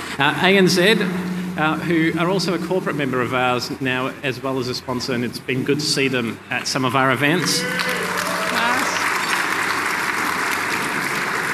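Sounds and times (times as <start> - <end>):
speech: 0.2 - 8.0
audience applause for a corporate sponsor at a members' event: 7.3 - 11.5.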